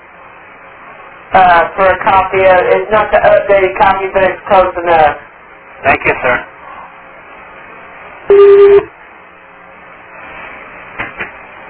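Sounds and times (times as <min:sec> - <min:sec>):
speech: 0:01.3 - 0:06.5
electronic beep: 0:08.3 - 0:08.9.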